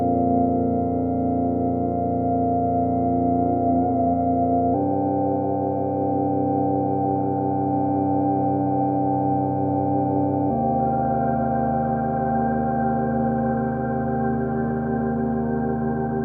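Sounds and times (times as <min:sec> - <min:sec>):
droning Moog Subharmonicon synthesizer on tape: 0:00.0 - 0:16.2.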